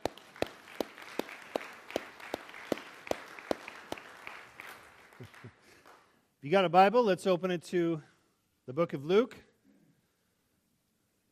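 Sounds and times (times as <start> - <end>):
audience clapping: 0.0 - 6.2
speech: 6.4 - 8.1, 8.7 - 9.5.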